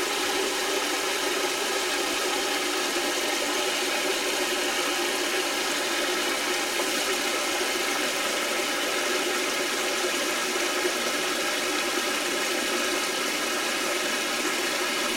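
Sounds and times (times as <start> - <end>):
household faucet running water into sink: 0.0 - 15.1.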